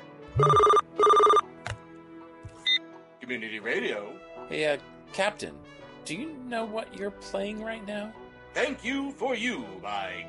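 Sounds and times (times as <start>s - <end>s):
telephone ringing in a community radio station studio: 0.4s - 1.5s
speech: 3.3s - 10.2s.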